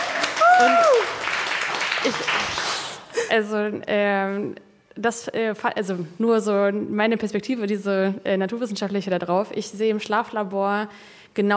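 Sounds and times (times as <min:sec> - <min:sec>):
audience applause: 0:00.0 - 0:03.1
speech: 0:00.6 - 0:01.2, 0:02.0 - 0:02.6, 0:03.2 - 0:11.5.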